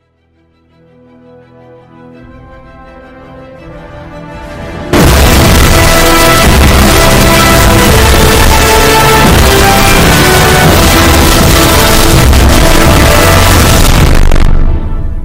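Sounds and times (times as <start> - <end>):
distorted loud earrape theme song: 0.4 - 15.2.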